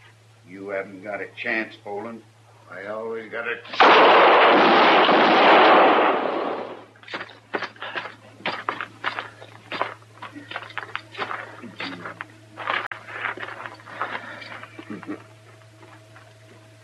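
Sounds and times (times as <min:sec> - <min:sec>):
low steady hum: 0:00.0 - 0:16.8
speech: 0:00.5 - 0:05.3
gunfire in a western radio drama shootout: 0:03.8 - 0:06.8.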